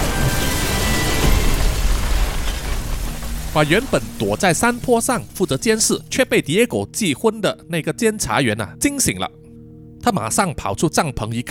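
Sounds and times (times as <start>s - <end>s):
huge bomb explosion: 0.0s - 6.1s
speech: 3.6s - 9.4s, 10.0s - 11.5s.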